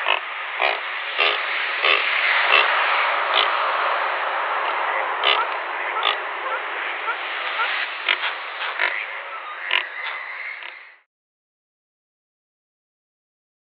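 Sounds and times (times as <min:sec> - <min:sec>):
Dalmatian pelican grunting: 0:00.0 - 0:02.7, 0:03.3 - 0:03.6, 0:04.7 - 0:10.8.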